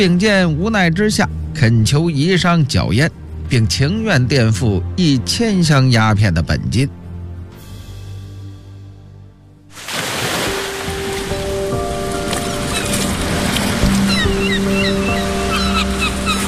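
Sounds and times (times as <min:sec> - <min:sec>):
speech: 0:00.0 - 0:07.0
ocean waves breaking on shore by the sea in Macau: 0:09.7 - 0:16.4
flock of circling seabirds chirping: 0:11.0 - 0:16.4.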